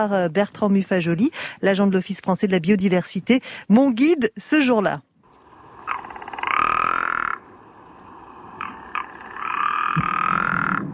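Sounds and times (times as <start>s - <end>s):
speech: 0.0s - 5.1s
Rock Ptarmigan song of hoarse rattling croaks: 5.3s - 10.9s.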